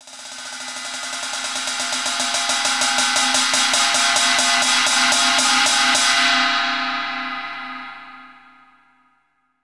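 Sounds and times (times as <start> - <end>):
ride cymbal: 0.0 - 7.6.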